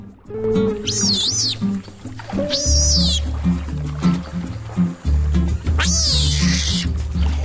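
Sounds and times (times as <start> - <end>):
water splashing: 0.0 - 7.4
giant otter squeaking: 0.6 - 3.3, 5.8 - 6.8.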